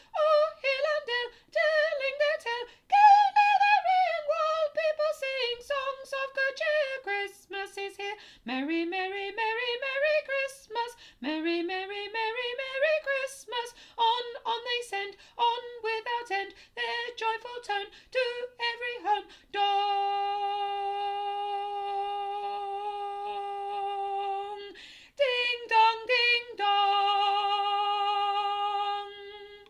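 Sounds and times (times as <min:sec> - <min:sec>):
soprano singing: 0:00.0 - 0:29.6.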